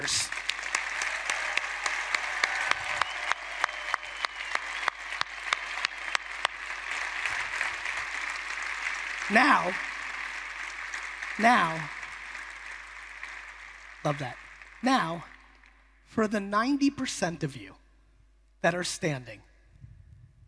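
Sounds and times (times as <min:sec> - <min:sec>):
audience clapping: 0:00.0 - 0:16.0
speech: 0:09.3 - 0:09.9, 0:11.4 - 0:12.0, 0:14.0 - 0:15.3, 0:16.1 - 0:17.8, 0:18.6 - 0:19.5.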